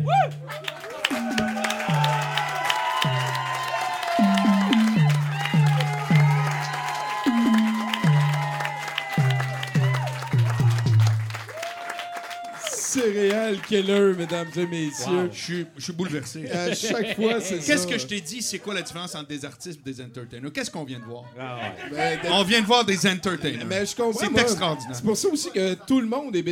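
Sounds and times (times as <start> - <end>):
audience applause and cheering: 0.0 - 15.2
speech: 0.2 - 0.8, 13.5 - 26.4
laughter: 16.4 - 19.0, 21.0 - 26.4.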